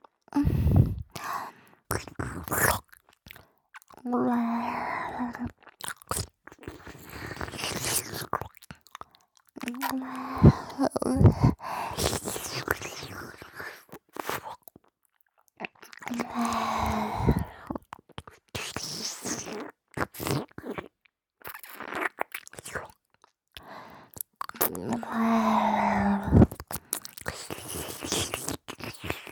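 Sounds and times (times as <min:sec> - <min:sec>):
person making mouth sounds: 0:00.3 - 0:02.9, 0:03.8 - 0:08.6, 0:09.6 - 0:13.4, 0:15.6 - 0:20.9, 0:24.4 - 0:29.3.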